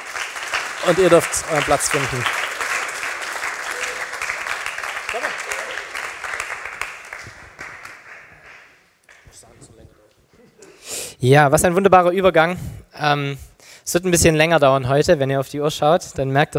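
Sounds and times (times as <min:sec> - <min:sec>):
audience applause: 0:00.0 - 0:09.4
speech: 0:00.8 - 0:02.4, 0:11.2 - 0:16.5.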